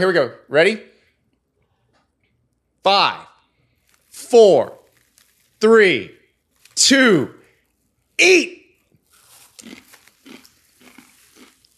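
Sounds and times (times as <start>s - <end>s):
speech: 0.0s - 0.9s, 2.8s - 3.3s, 4.2s - 4.8s, 5.6s - 6.2s, 6.8s - 7.4s, 8.2s - 8.6s
crunchy chewing on a chip: 3.7s - 11.7s.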